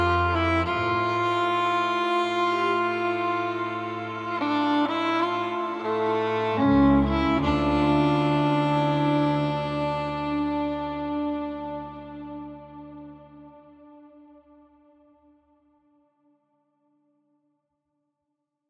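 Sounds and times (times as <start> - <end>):
lullaby music: 0.0 - 13.8.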